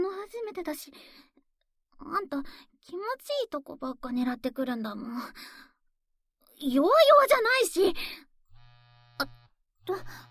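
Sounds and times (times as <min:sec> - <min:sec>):
speech: 0:00.5 - 0:01.4, 0:02.0 - 0:05.7, 0:06.6 - 0:08.3, 0:09.2 - 0:10.2
mobile phone buzzing on vibrate: 0:08.5 - 0:10.2.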